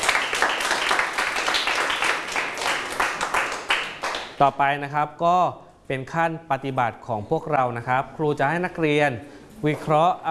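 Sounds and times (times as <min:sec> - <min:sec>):
applause: 0:00.0 - 0:04.4
speech: 0:04.4 - 0:10.3.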